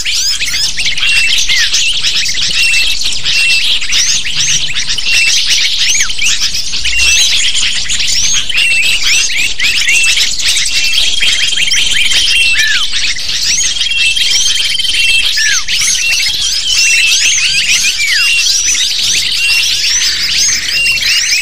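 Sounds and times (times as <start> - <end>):
lovebird flock calling: 0.0 - 21.4
thin steady whistled tone: 5.9 - 21.4.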